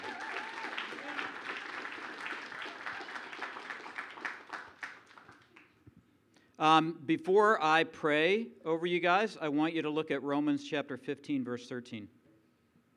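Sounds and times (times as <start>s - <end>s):
audience applause: 0.0s - 5.7s
speech: 6.6s - 12.2s.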